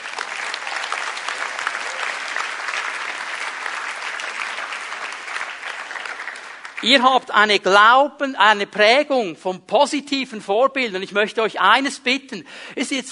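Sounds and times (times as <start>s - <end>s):
audience applause: 0.0s - 7.0s
speech: 6.8s - 13.1s.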